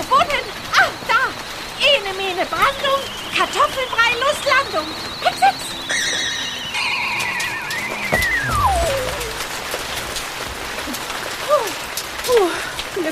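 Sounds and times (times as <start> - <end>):
heavy rain pouring down: 0.0 - 13.0
speech: 2.4 - 5.4
brief chirps: 2.9 - 9.6
descending whistling tone: 4.4 - 10.0
rumbles: 6.7 - 10.3.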